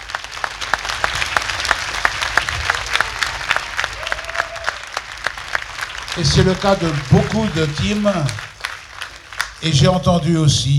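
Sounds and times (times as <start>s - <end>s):
laughter: 0.0s - 10.5s
crowd applauding: 0.0s - 10.7s
speech: 6.2s - 8.5s, 9.6s - 10.7s.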